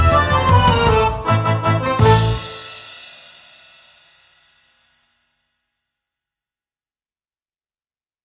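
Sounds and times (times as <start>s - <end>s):
instrumental polka: 0.0s - 3.1s.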